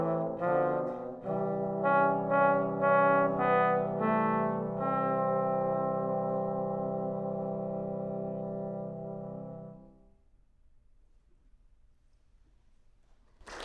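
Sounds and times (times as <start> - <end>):
trombone quartet playing a waltz: 0.0 - 9.9.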